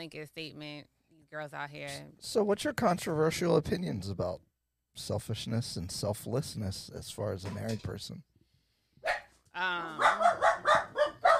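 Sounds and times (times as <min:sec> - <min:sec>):
speech: 0:00.0 - 0:08.3, 0:09.6 - 0:10.4
dogs barking: 0:09.0 - 0:09.3, 0:10.0 - 0:11.3.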